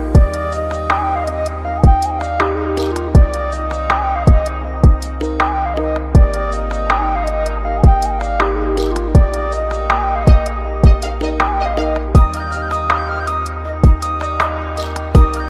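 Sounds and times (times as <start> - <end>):
music ringtone: 0.1 - 15.4.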